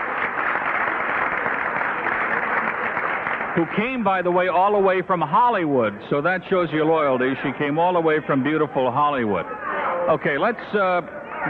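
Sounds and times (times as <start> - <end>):
audience applause for a guest: 0.0 - 4.6
speech: 3.6 - 11.4.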